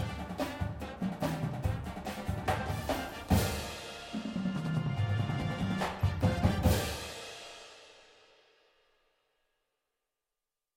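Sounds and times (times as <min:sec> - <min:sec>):
full drumline playing: 0:00.0 - 0:07.5
music: 0:00.0 - 0:09.8.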